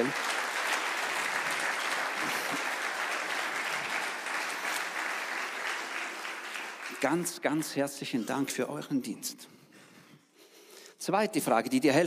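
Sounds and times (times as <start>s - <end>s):
audience applause: 0.0s - 7.8s
speech: 7.0s - 9.6s, 11.1s - 12.0s.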